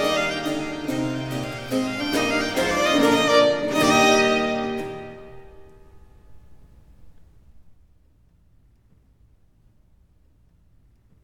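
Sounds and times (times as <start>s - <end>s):
sonata in F major gigue allegro: 0.0s - 5.6s.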